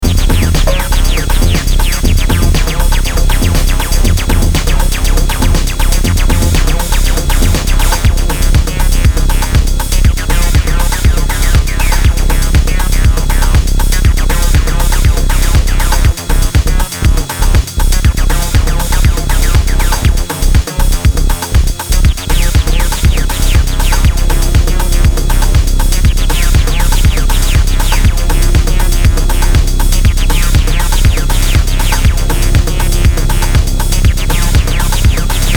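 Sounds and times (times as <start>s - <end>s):
techno music: 0.0s - 35.5s.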